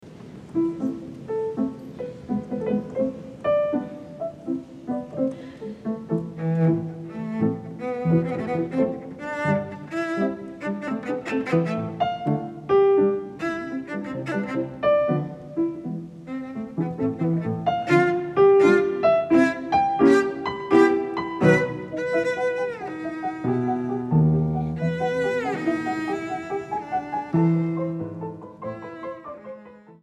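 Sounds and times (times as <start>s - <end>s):
cello sonata movement: 0.0s - 30.0s.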